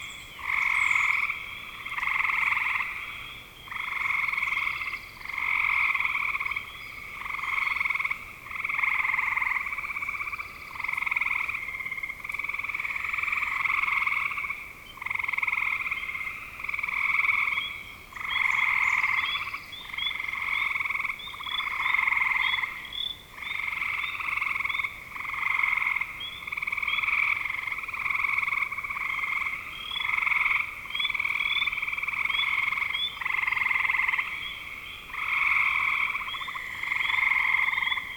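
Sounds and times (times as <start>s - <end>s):
spring frogs croaking: 0.0s - 38.1s.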